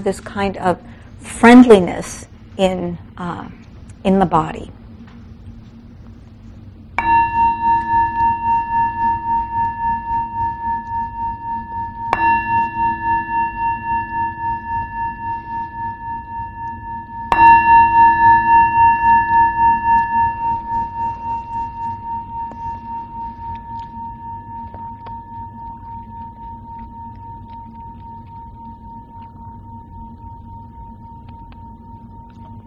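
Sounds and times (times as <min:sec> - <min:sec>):
speech: 0:00.0 - 0:04.8
meditation bell ringing: 0:07.0 - 0:32.6.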